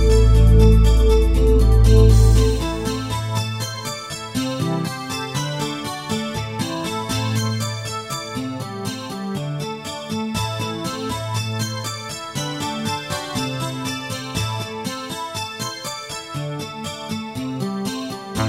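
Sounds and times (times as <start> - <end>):
Roland VSC software synthesizer playing MIDI: 0.0 - 8.6.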